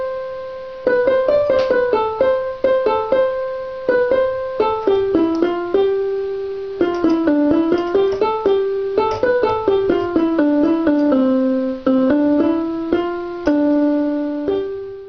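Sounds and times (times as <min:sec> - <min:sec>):
eight-year-old girl playing a melody by ear on piano: 0:00.0 - 0:15.0.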